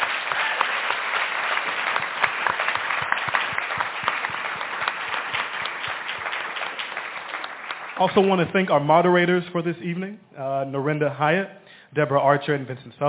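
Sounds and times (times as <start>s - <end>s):
audience applause: 0.0s - 8.6s
speech: 8.0s - 13.0s.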